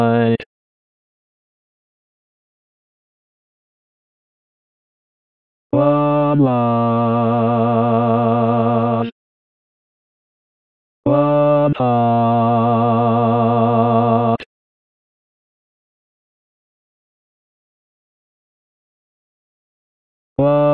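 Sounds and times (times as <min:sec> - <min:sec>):
tenor and bass singing: 0:00.0 - 0:00.5, 0:05.8 - 0:09.1, 0:11.1 - 0:14.5, 0:20.4 - 0:20.7.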